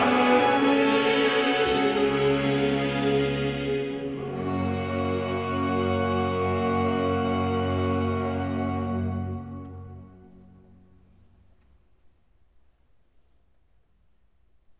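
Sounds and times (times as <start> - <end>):
choir singing cantatas: 0.0 - 9.7.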